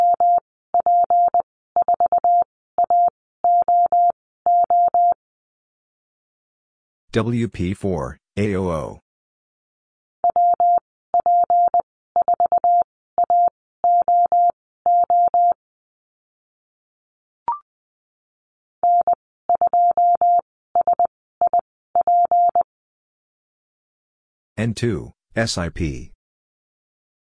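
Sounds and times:
Morse code call signs at 20 words per minute: 0:00.0 - 0:05.2, 0:10.2 - 0:15.6, 0:18.8 - 0:22.6
speech: 0:07.1 - 0:09.0, 0:24.6 - 0:26.2.

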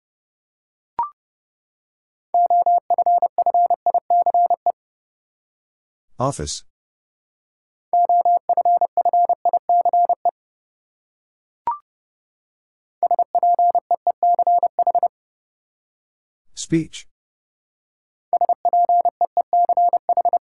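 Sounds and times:
Morse code beeps at 30wpm: 0:02.4 - 0:04.8, 0:08.0 - 0:10.3, 0:13.0 - 0:15.1, 0:18.3 - 0:20.4.

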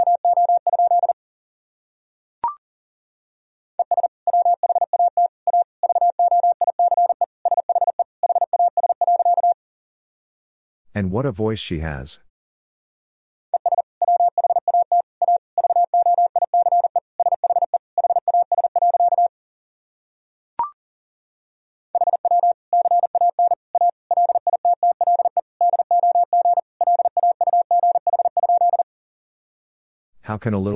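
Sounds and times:
rapid Morse code tones at 40 words per minute: 0:00.0 - 0:01.2, 0:03.8 - 0:09.6, 0:13.6 - 0:19.3, 0:22.0 - 0:28.8
speech: 0:11.0 - 0:12.3, 0:30.4 - 0:30.7.

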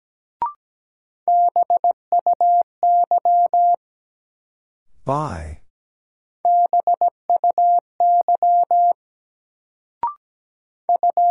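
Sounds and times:
Morse code beeps: 0:01.3 - 0:03.8, 0:06.5 - 0:09.0, 0:10.9 - 0:11.3
person speaking: 0:04.9 - 0:05.7.

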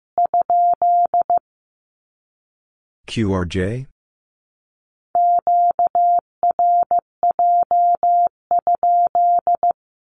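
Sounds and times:
Morse code Q-code beeps: 0:00.2 - 0:01.4, 0:05.2 - 0:09.8
person speaking: 0:03.1 - 0:03.9.

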